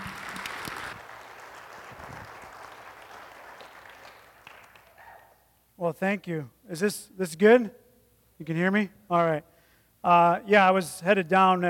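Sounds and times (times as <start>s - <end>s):
church congregation applauding to welcome a guest pastor: 0.0s - 5.2s
speech: 5.8s - 7.8s, 8.4s - 11.6s.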